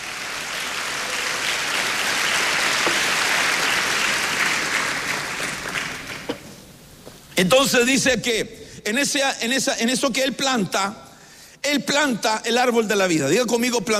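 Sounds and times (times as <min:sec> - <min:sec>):
audience clapping hands: 0:00.0 - 0:06.5
speech: 0:07.4 - 0:11.0, 0:11.6 - 0:13.9.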